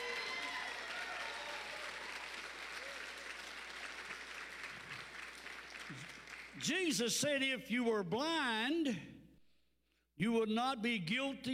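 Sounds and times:
audience applauding: 0:00.0 - 0:06.6
speech: 0:05.9 - 0:09.1, 0:10.2 - 0:11.5.

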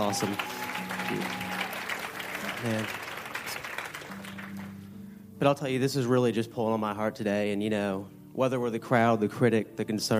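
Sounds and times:
speech: 0:00.0 - 0:01.5, 0:02.5 - 0:03.0, 0:05.4 - 0:10.1
audience applause: 0:00.0 - 0:04.9.

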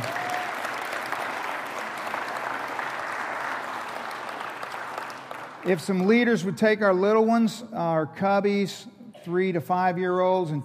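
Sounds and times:
audience clapping: 0:00.0 - 0:06.4
speech: 0:05.6 - 0:10.6.

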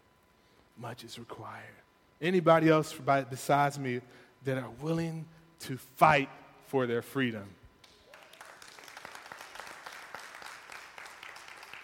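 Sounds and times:
speech: 0:00.8 - 0:07.6
audience applause: 0:08.1 - 0:11.8.

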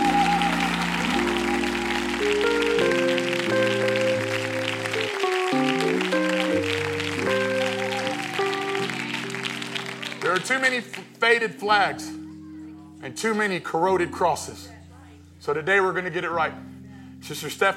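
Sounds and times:
audience clapping hands in praise: 0:00.0 - 0:11.2
speech: 0:10.5 - 0:12.2, 0:13.0 - 0:14.7, 0:15.4 - 0:17.7.

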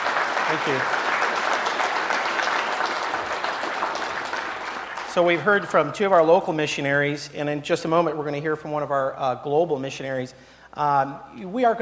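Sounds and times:
audience applause: 0:00.0 - 0:06.3
speech: 0:00.5 - 0:01.3, 0:05.2 - 0:11.8.

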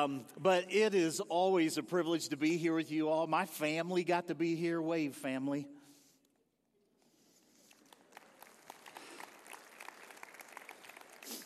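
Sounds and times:
speech: 0:00.0 - 0:05.8
audience applause: 0:07.7 - 0:11.4.

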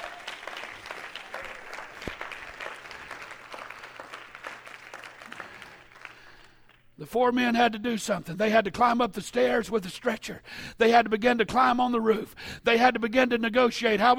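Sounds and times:
audience clapping hands: 0:00.0 - 0:07.0
speech: 0:07.0 - 0:14.1.

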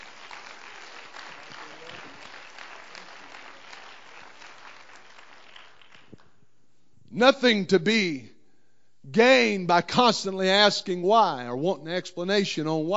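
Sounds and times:
audience clapping hands: 0:00.0 - 0:06.4
speech: 0:07.1 - 0:08.3, 0:09.0 - 0:12.9.

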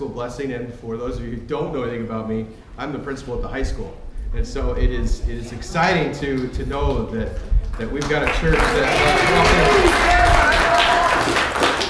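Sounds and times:
speech: 0:00.0 - 0:10.0
church congregation applauding a high school principal at a back-to-school blessing: 0:07.6 - 0:11.8
voices and whoops: 0:08.8 - 0:11.5.

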